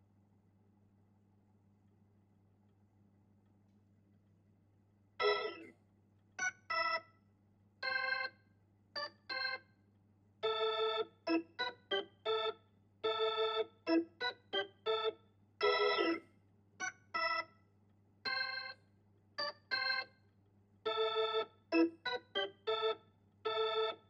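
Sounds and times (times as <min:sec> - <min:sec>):
Hammond organ: 0:05.2 - 0:05.8, 0:06.4 - 0:07.1, 0:07.8 - 0:08.4, 0:09.0 - 0:09.7, 0:10.4 - 0:17.6, 0:18.2 - 0:18.8, 0:19.4 - 0:24.0.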